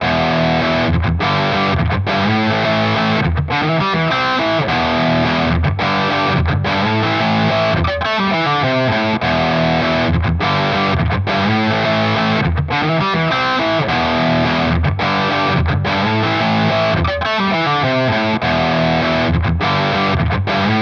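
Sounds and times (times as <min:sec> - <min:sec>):
guitar through Nux ProCo Rat distortion pedal: 0:00.0 - 0:20.7.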